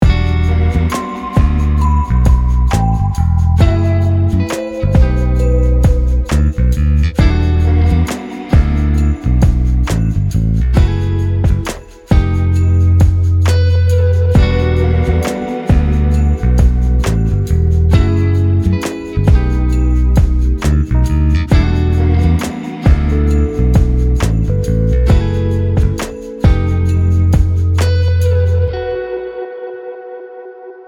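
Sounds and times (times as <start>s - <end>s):
soulful pop music: 0.0s - 30.8s.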